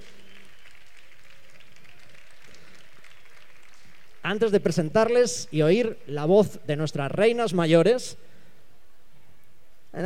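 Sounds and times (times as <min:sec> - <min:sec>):
audience applause: 0:00.0 - 0:04.3
speech: 0:04.3 - 0:08.3.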